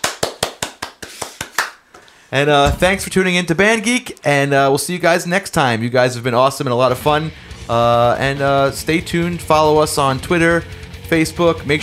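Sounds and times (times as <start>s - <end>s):
hand claps: 0.0s - 2.2s
speech: 2.3s - 11.8s.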